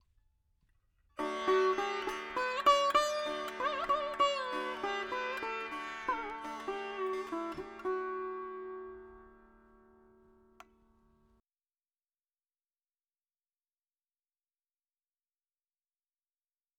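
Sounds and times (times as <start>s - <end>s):
dry veena melody: 1.2s - 11.3s.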